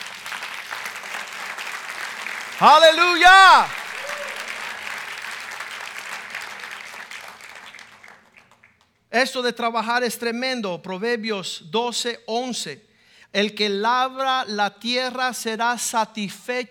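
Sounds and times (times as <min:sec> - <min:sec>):
applause: 0:00.0 - 0:08.9
speech: 0:02.6 - 0:03.8, 0:09.2 - 0:16.6.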